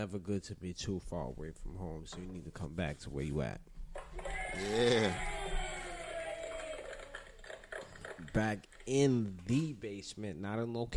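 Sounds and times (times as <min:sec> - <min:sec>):
speech: 0:00.0 - 0:05.5, 0:08.3 - 0:10.9
people clapping and cheering: 0:04.0 - 0:08.6.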